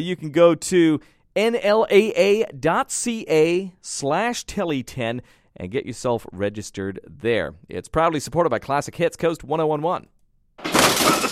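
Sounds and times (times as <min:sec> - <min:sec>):
speech: 0:00.0 - 0:10.7
tiles smashing in a bathroom demolition: 0:10.6 - 0:11.3.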